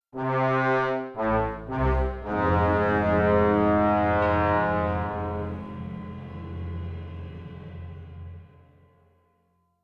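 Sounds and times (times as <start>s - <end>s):
battle lose music: 0.2s - 7.3s.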